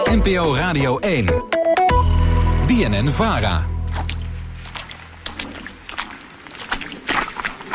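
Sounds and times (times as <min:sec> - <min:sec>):
speech: 0:00.2 - 0:01.6, 0:02.7 - 0:03.7
footsteps splashing through rain puddles around the Groene Huis in Amersfoort: 0:03.3 - 0:07.7.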